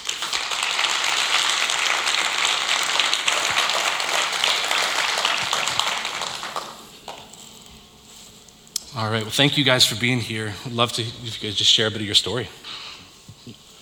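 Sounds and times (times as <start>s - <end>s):
audience applause welcoming two guests to the stage: 0.0s - 7.4s
speech: 9.0s - 12.8s.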